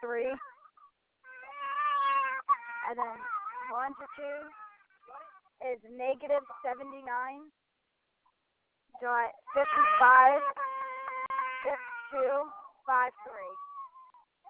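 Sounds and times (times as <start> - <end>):
speech: 0.1 - 0.6, 2.9 - 7.6, 8.9 - 10.6, 11.6 - 13.7
baby whimpering, cooing and crying: 0.3 - 5.6, 6.3 - 7.2, 9.3 - 14.4.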